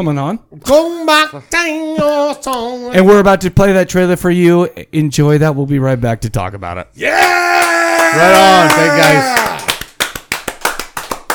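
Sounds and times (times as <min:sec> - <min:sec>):
speech: 0:00.0 - 0:09.5
hands clapping: 0:07.6 - 0:11.3.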